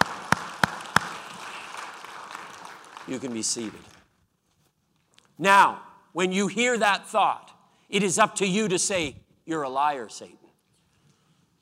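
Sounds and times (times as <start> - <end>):
audience clapping in unison: 0.0 - 4.1
speech: 3.1 - 4.0, 5.4 - 10.4.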